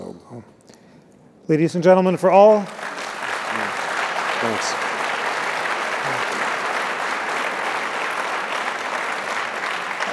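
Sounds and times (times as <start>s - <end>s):
speech: 1.5s - 2.8s, 4.4s - 4.9s
crowd applauding: 2.5s - 10.1s.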